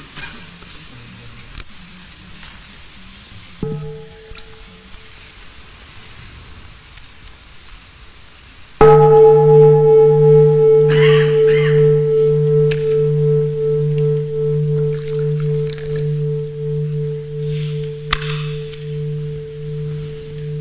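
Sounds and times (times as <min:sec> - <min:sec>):
meditation bell struck: 0:03.6 - 0:05.1, 0:08.8 - 0:20.5.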